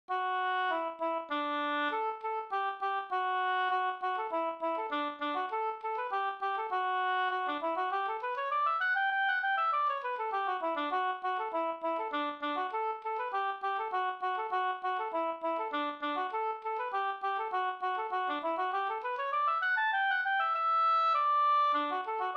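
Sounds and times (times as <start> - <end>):
slangpolska folk dance tune: 0.1 - 22.3.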